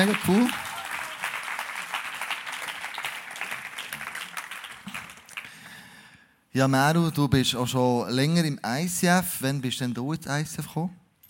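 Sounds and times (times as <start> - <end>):
speech: 0.0 - 0.6, 6.6 - 11.0
audience applause: 0.0 - 5.8.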